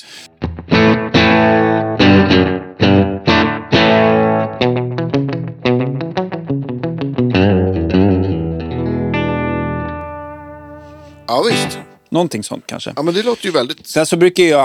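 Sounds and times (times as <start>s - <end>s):
overdriven electric guitar with slapback delay: 0.3s - 12.0s
speech: 11.4s - 14.6s.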